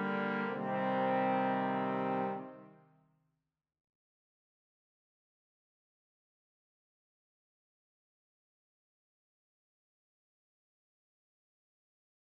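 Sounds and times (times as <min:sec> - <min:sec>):
trombone quartet playing: 0:00.0 - 0:02.6.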